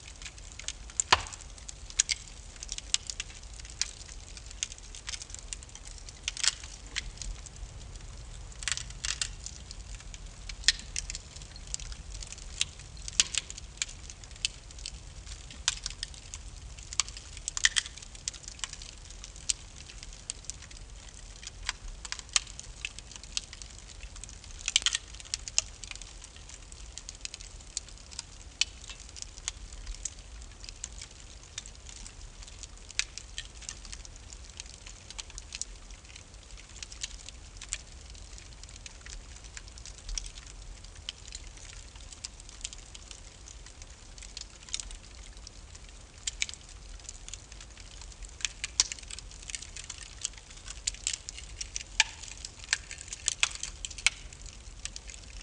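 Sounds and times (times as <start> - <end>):
fire kindling: 0.0 - 55.4.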